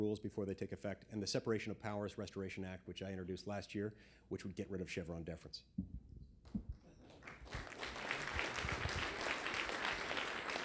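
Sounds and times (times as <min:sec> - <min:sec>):
speech: 0:00.0 - 0:06.0
audience applause: 0:07.0 - 0:10.6.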